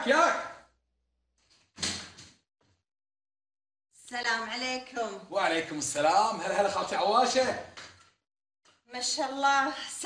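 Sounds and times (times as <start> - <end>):
door swinging open: 1.4 - 2.4
speech: 4.1 - 7.8, 8.9 - 10.0.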